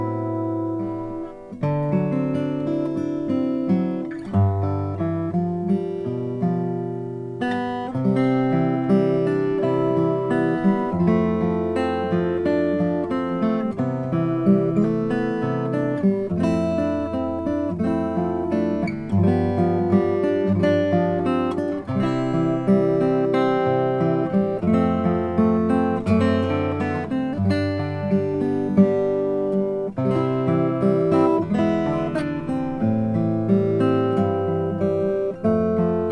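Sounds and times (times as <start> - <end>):
1998 sunburst 000 12 fret acoustic guitar: 0.0 - 36.1.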